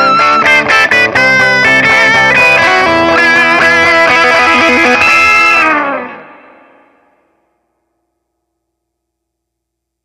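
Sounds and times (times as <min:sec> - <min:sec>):
rhythm guitar: 0:00.0 - 0:06.9.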